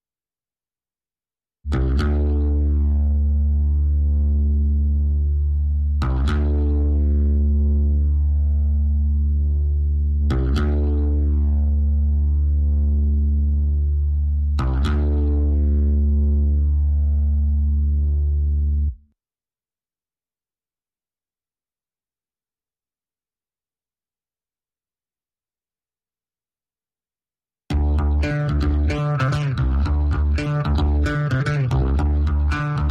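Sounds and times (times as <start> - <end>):
bass: 1.7 - 19.1, 27.7 - 32.8.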